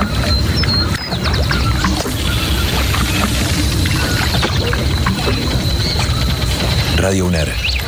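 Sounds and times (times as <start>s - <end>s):
river water flowing: 0.1s - 7.0s
speech: 7.1s - 7.7s.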